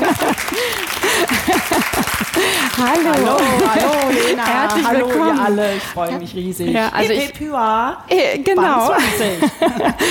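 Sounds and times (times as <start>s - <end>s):
laughter: 0.0s - 5.3s, 8.9s - 10.0s
live crowd clapping: 0.0s - 5.9s
speech: 2.8s - 10.0s.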